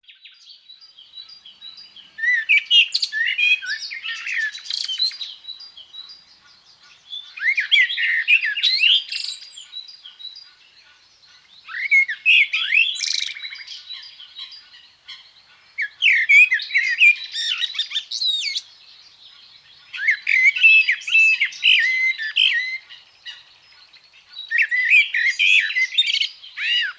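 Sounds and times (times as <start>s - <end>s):
morning birds singing: 0.0s - 26.9s.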